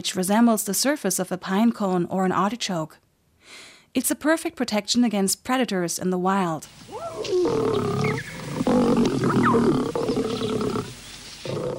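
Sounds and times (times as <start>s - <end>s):
speech: 0.0s - 10.0s
lions roaring and growling: 6.9s - 11.7s.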